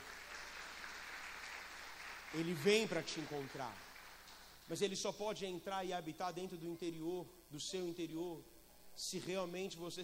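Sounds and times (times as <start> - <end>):
applause: 0.0 - 4.7
speech: 2.3 - 3.9, 4.7 - 10.0.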